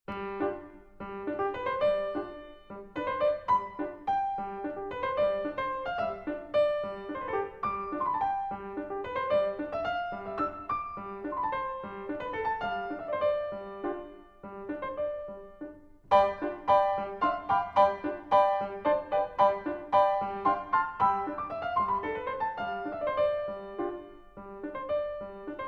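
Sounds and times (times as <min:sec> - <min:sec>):
waltz music: 0:00.1 - 0:25.6.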